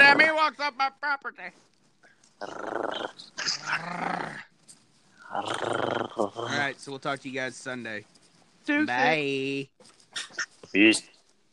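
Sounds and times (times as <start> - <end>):
speech: 0.5 - 1.7, 2.4 - 4.5, 5.3 - 11.1
dog growling: 2.4 - 4.5, 5.2 - 6.7.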